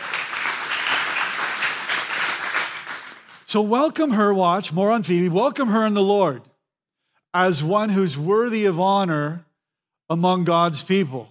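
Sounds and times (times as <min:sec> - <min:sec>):
church congregation applauding: 0:00.0 - 0:03.5
speech: 0:03.5 - 0:06.5, 0:07.4 - 0:09.5, 0:10.1 - 0:11.2.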